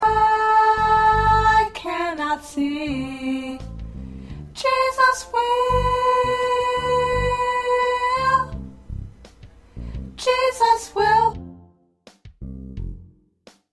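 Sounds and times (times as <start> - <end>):
choir with soprano: 0.0 - 3.6, 4.6 - 8.6, 10.2 - 11.4.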